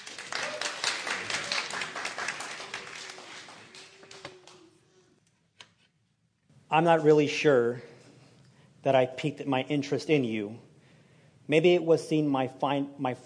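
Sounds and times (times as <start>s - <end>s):
audience applause at a church talk welcoming a speaker: 0.0s - 4.8s
speech: 6.7s - 7.9s, 8.8s - 10.7s, 11.5s - 13.2s.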